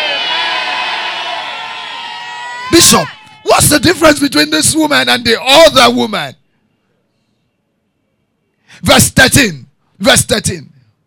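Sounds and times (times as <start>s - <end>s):
audience shouting amen: 0.0s - 4.0s
speech: 2.7s - 6.4s, 8.8s - 10.7s.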